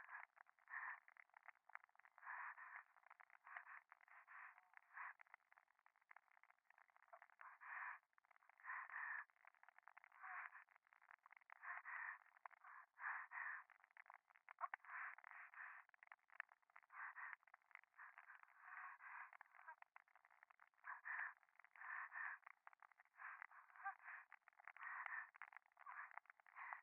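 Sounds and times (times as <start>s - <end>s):
pleasurable breathing in the left ear: 0.0s - 1.4s, 2.2s - 5.3s, 6.9s - 9.4s, 10.2s - 13.8s, 14.7s - 16.0s, 16.8s - 19.8s, 20.8s - 26.8s.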